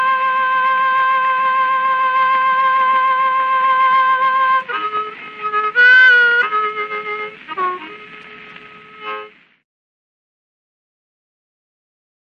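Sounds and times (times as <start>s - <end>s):
harp: 0.0s - 9.4s.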